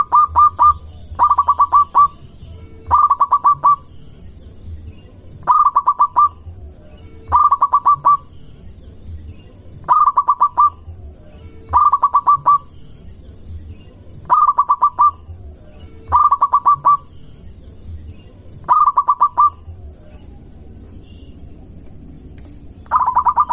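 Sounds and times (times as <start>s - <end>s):
zebra dove of a local strain cooing: 0.0s - 2.2s, 2.9s - 3.9s, 5.4s - 6.4s, 7.3s - 8.3s, 9.8s - 11.0s, 11.7s - 12.7s, 14.2s - 15.4s, 16.1s - 17.1s, 18.6s - 19.8s, 22.9s - 23.5s.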